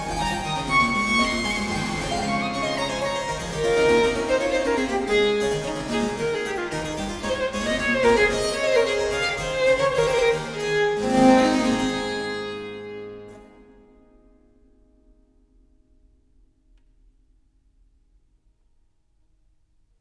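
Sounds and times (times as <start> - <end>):
harpsichord playing a sonata: 0.0 - 12.6
violin playing a sonata: 0.0 - 14.0.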